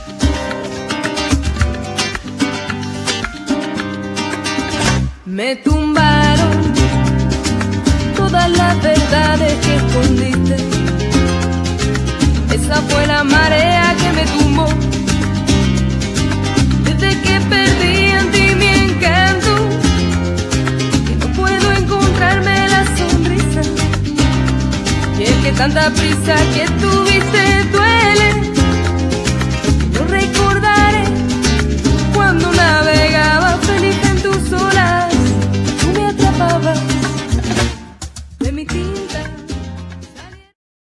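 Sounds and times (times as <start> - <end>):
chill flamenco music: 0.0 - 40.6.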